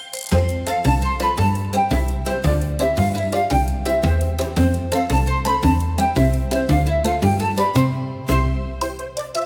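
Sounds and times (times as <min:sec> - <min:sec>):
country music: 0:00.4 - 0:09.4.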